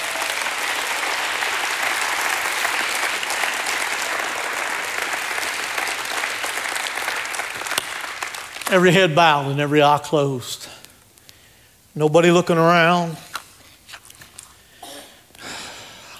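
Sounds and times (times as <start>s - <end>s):
audience applause: 0.0s - 8.7s
speech: 8.7s - 10.8s, 12.0s - 13.2s.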